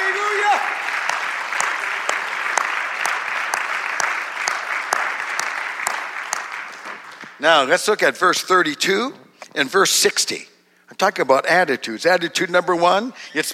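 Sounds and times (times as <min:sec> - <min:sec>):
audience clapping hands: 0:00.0 - 0:07.4
speech: 0:07.4 - 0:13.5.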